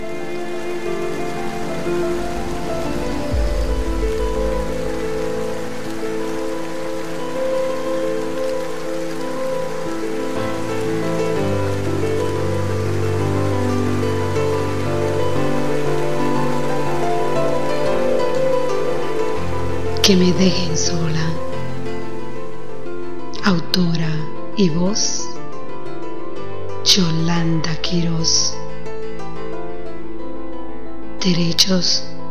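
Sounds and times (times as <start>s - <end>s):
rain falling: 0.0s - 25.2s
speech: 20.1s - 21.3s, 24.6s - 25.3s, 27.0s - 28.6s, 31.2s - 32.1s.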